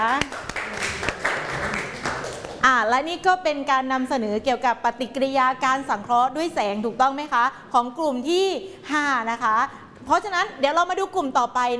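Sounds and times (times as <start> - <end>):
classroom applause: 0.0 - 2.6
speech: 2.9 - 11.7.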